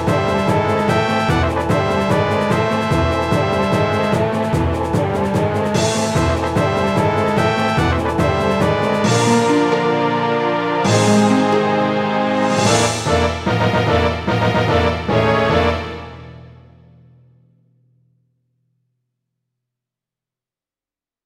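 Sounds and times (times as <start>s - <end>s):
boss battle music: 0.0s - 16.8s.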